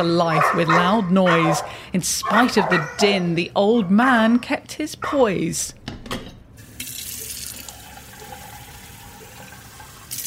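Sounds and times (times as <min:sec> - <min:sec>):
speech: 0:00.0 - 0:05.8
water gushing from a tap into a pot: 0:06.7 - 0:10.2.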